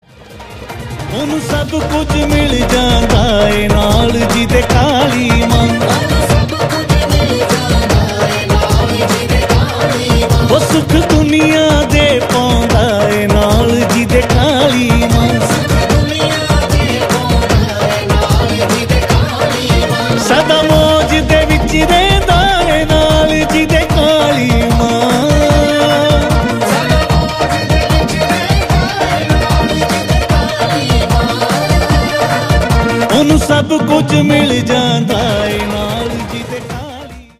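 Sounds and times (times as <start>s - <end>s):
devotional bhajan singing to Kali Mata: 1.0s - 37.3s.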